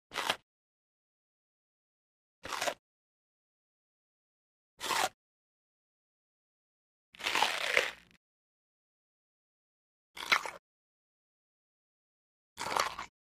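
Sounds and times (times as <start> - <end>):
biting crunch: 2.4 - 2.8, 4.8 - 5.2, 7.2 - 8.2, 10.2 - 10.6, 12.6 - 13.1.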